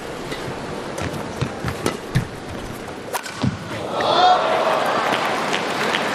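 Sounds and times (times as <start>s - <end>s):
badminton racket striking shuttlecock: 0.3s - 3.7s
crowd roar: 3.7s - 6.0s.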